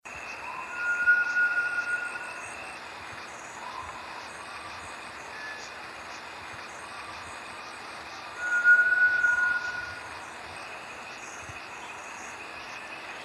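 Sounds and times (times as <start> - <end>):
Bartlett's tinamou calling with long pure whistled notes: 0.3 - 2.6, 8.4 - 10.1.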